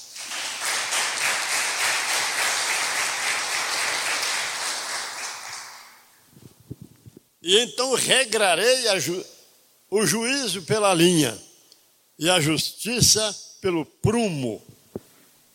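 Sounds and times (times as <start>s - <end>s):
crowd applause: 0.0s - 6.0s
speech: 7.4s - 11.5s, 12.2s - 14.7s.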